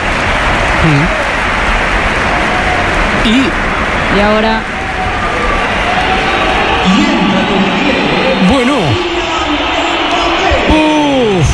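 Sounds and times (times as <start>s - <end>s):
stadium crowd applause: 0.0s - 11.5s
speech: 0.8s - 1.2s, 3.2s - 4.8s, 6.9s - 8.5s
crowd cries and whistles: 4.7s - 11.5s.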